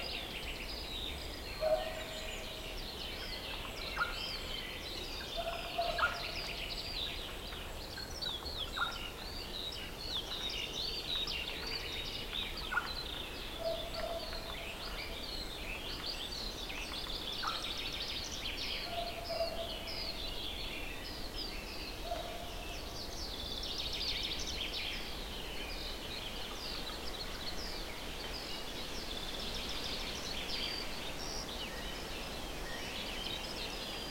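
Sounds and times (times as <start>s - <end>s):
forest near meadow spring ambience: 0.0s - 34.1s.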